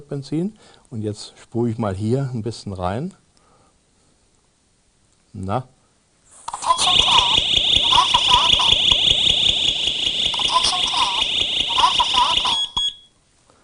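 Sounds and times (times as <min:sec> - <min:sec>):
speech: 0:00.0 - 0:03.2, 0:05.3 - 0:05.8
recorded electronic voice warning from gas leak detector: 0:06.5 - 0:12.9
gas leak detector high-pitched alarm tone: 0:06.5 - 0:13.0.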